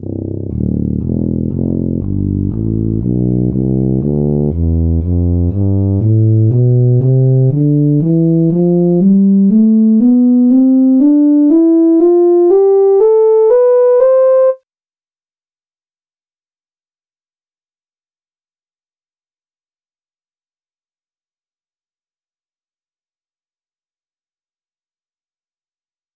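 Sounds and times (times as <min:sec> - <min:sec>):
tuba playing scale: 0:00.0 - 0:14.6.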